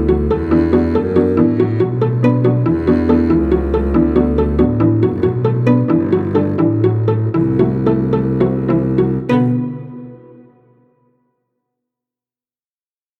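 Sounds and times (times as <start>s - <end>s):
string quartet: 0.0s - 10.5s.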